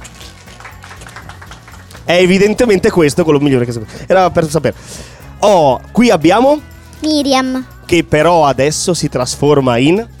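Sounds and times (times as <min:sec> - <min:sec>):
audience applause: 0:00.0 - 0:02.7
speech: 0:02.1 - 0:10.1.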